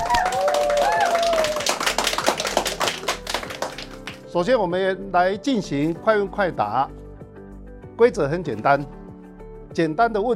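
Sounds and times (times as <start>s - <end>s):
clapping applause: 0.0s - 4.2s
speech: 4.4s - 7.0s, 8.0s - 9.0s, 9.8s - 10.3s.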